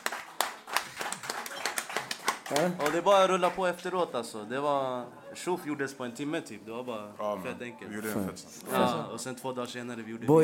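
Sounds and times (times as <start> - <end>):
applause: 0.0 - 3.8
speech: 2.5 - 10.4.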